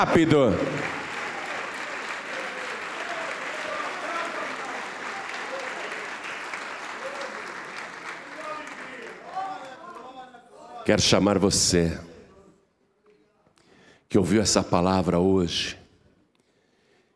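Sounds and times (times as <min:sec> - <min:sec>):
speech: 0:00.0 - 0:00.8, 0:10.9 - 0:12.1, 0:14.1 - 0:15.8
audience applause: 0:00.0 - 0:10.3.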